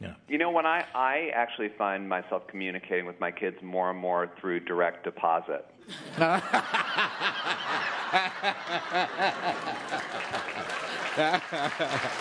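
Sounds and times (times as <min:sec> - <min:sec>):
speech: 0:00.3 - 0:12.2
bursts of laughter and snickering: 0:05.9 - 0:12.2
crowd clapping: 0:06.8 - 0:12.2.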